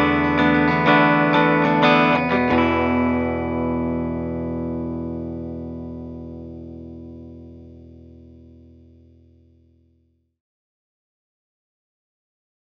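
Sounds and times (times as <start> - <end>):
clean guitar on bridge pickups: 0.0 - 10.1.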